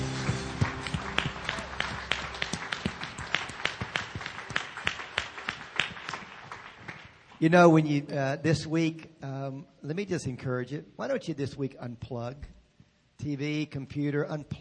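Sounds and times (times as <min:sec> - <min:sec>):
audience clapping: 0:00.0 - 0:07.4
speech: 0:07.4 - 0:12.6, 0:13.2 - 0:14.5.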